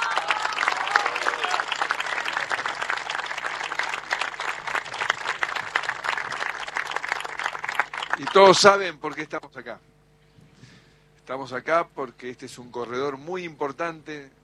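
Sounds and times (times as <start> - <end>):
audience applause: 0.0 - 8.8
speech: 8.2 - 9.9, 11.3 - 14.4.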